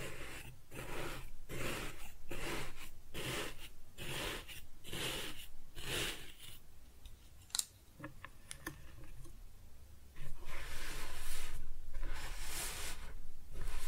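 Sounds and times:
kinetic sand cut and scooped: 0.0 - 6.4, 10.4 - 13.8.

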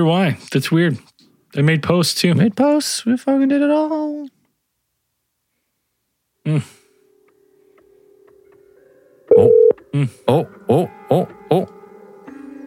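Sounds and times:
speech: 0.0 - 4.1, 6.4 - 6.8, 9.4 - 11.8
faint hum: 6.8 - 10.1
short electronic beeps: 9.3 - 9.8
telephone tones as a call comes in on a call-in line: 9.3 - 9.8.

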